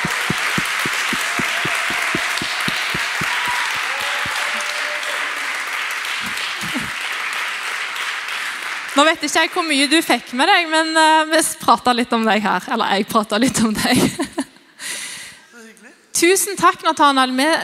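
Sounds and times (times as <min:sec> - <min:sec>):
audience applause: 0:00.0 - 0:09.0
laughter: 0:06.2 - 0:07.0
speech: 0:09.0 - 0:14.4, 0:16.2 - 0:17.6.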